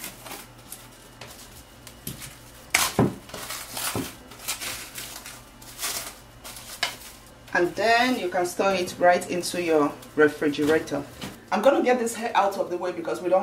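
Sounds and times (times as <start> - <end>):
plastic food wrap being wrapped around plants: 0.0 - 7.4
speech: 7.6 - 13.4.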